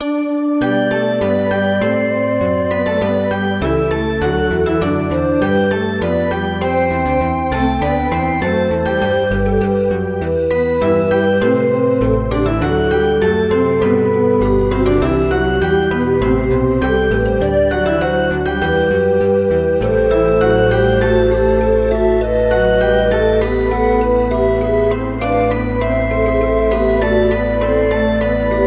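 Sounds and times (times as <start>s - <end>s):
morning music: 0.0s - 28.6s.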